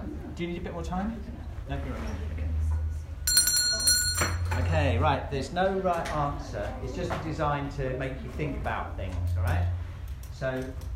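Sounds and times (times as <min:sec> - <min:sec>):
speech: 0:00.4 - 0:02.5, 0:04.2 - 0:09.8, 0:10.4 - 0:10.9
bell ringing: 0:03.2 - 0:04.7.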